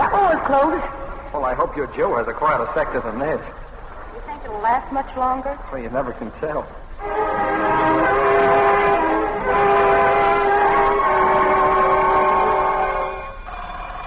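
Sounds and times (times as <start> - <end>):
speech: 0.5 - 3.6, 4.2 - 8.3
air raid all-clear siren: 7.0 - 14.0.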